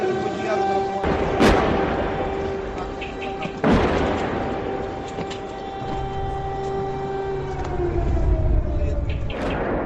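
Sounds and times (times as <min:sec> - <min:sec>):
air-raid sirens: 0:00.0 - 0:09.8
bombing explosions: 0:01.0 - 0:05.0, 0:08.1 - 0:09.8.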